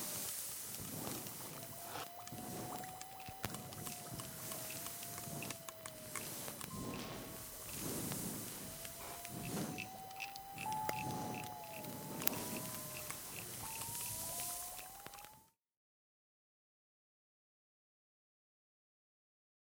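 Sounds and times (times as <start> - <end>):
nature ambience: 0.0 - 15.5.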